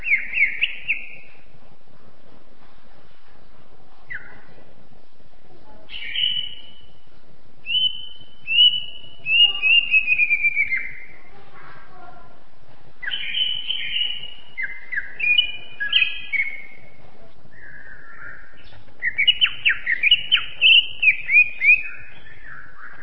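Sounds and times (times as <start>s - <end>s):
champion Greater green leafbird singing: 0.0s - 1.4s, 5.9s - 7.0s, 7.6s - 11.2s, 13.0s - 23.0s.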